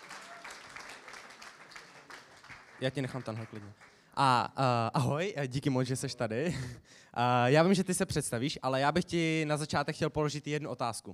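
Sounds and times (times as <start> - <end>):
church congregation applause: 0.0 - 4.1
speech: 2.8 - 11.1.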